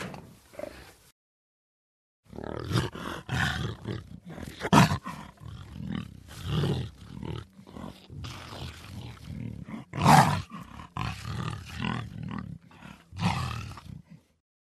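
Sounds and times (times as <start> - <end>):
jaguar giving harsh roaring grunts and growl: 2.3 - 14.4.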